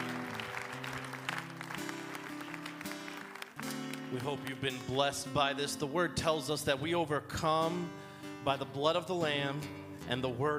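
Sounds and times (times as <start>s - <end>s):
audience applause: 0.0s - 4.6s
speech: 4.1s - 10.5s.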